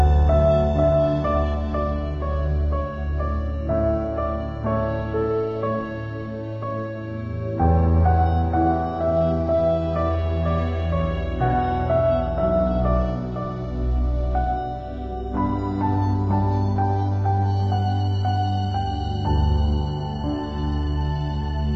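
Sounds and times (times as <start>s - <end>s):
soft piano music: 0.0s - 21.7s.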